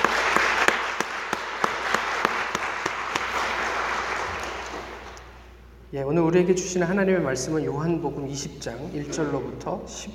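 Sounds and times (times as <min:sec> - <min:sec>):
audience applauding: 0:00.0 - 0:05.4
speech: 0:05.9 - 0:10.1.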